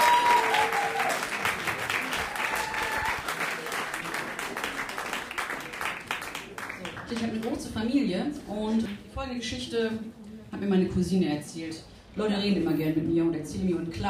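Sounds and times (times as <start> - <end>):
audience applause: 0.0 - 7.5
speech: 7.1 - 14.0.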